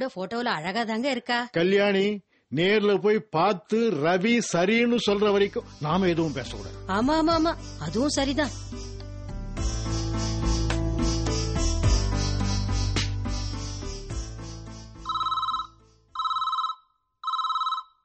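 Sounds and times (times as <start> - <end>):
speech: 0.0 - 8.8
loud music: 5.2 - 15.1
electronic telephone ringing: 15.0 - 18.0.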